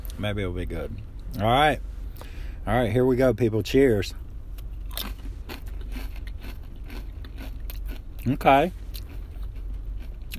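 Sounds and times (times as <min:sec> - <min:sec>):
speech: 0:00.2 - 0:04.2, 0:08.2 - 0:08.8
crunchy chip being bitten and chewed: 0:04.6 - 0:10.3.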